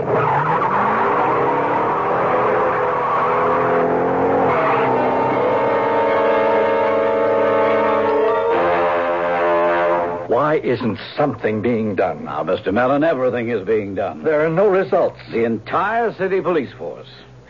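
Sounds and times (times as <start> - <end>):
screeching squeal: 0.0 - 8.6
getaway car engine starting and revving: 0.0 - 10.3
speech: 10.6 - 17.3.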